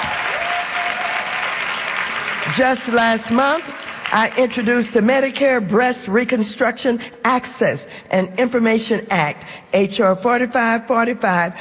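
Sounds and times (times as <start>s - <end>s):
audience applause at a congressional event: 0.0s - 4.6s
speech: 2.5s - 11.5s.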